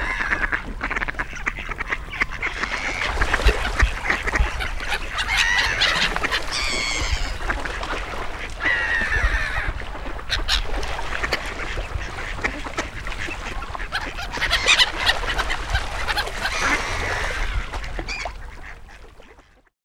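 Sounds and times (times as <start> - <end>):
seagulls calling: 0.0 - 18.8
ducks quacking: 0.0 - 19.4.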